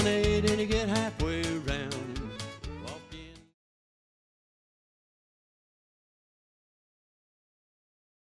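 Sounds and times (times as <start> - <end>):
square dance music: 0.0 - 3.5
person singing: 0.0 - 3.6.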